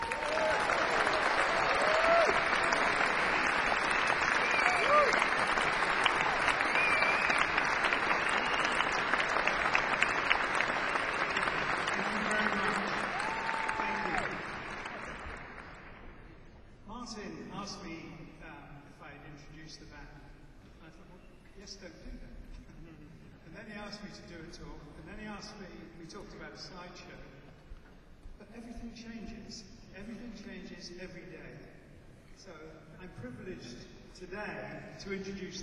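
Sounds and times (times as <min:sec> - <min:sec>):
audience applause welcoming an artist: 0:00.0 - 0:16.0.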